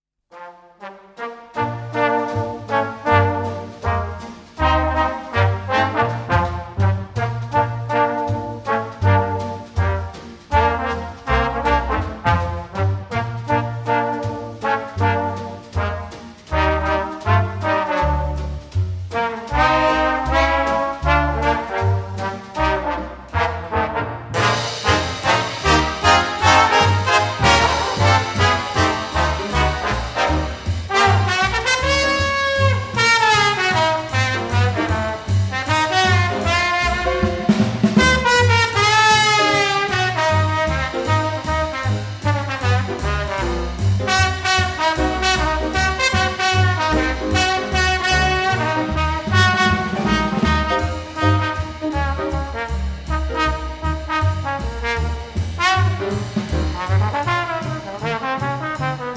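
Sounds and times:
estrada pop orchestra: 0:01.1 - 0:59.1.

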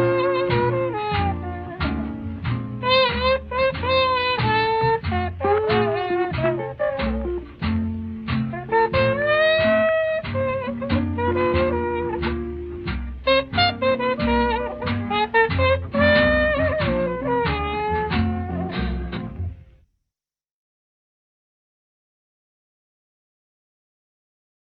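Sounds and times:
trumpet melodies: 0:00.0 - 0:07.7, 0:08.5 - 0:19.6.

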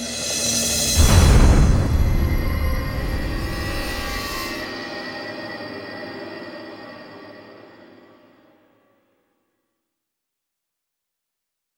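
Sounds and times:
gas drone: 0:00.0 - 0:04.8.

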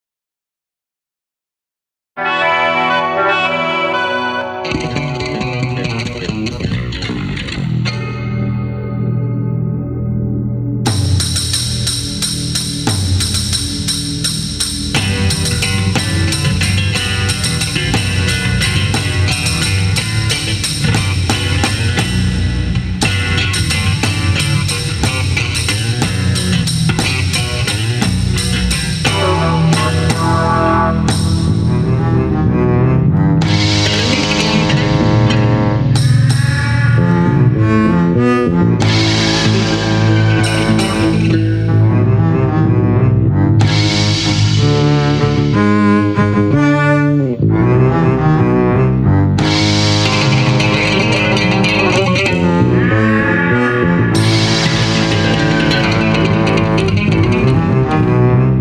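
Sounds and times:
bass solo: 0:02.2 - 0:58.5.

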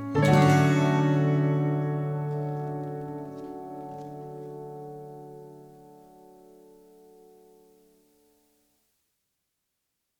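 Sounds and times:
osennee instrumental music: 0:00.0 - 0:07.8.

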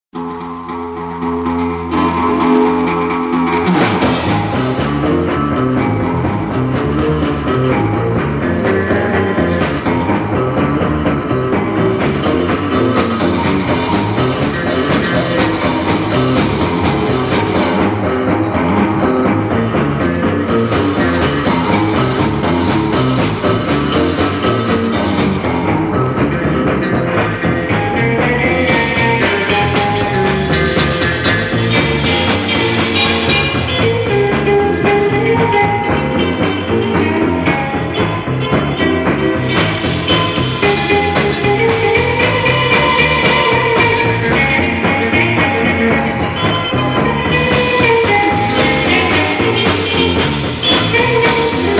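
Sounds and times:
guitar boogie: 0:00.2 - 0:51.7.

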